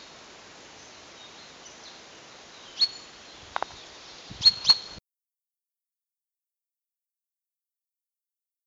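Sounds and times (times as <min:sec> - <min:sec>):
Common chaffinch Fringilla coelebs calls: 0:02.5 - 0:05.0.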